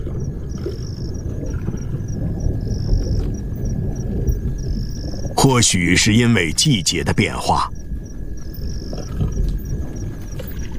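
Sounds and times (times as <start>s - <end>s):
distant thunder of an approaching storm: 0.0s - 10.7s
faint insect chirps: 0.0s - 10.7s
speech: 5.4s - 7.8s.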